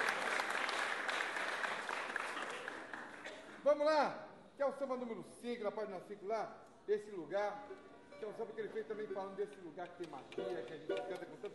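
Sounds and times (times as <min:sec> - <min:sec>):
audience applause: 0:00.0 - 0:03.3
speech: 0:03.6 - 0:11.5.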